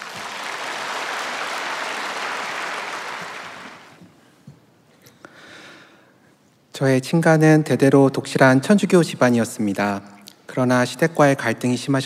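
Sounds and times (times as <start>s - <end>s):
audience applauding: 0.0s - 4.0s
speech: 6.8s - 12.0s.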